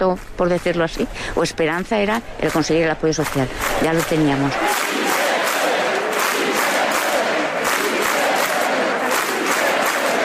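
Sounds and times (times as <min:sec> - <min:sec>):
speech: 0:00.0 - 0:05.0
crowd chanting in the Plaza de la Virgen: 0:03.2 - 0:10.2.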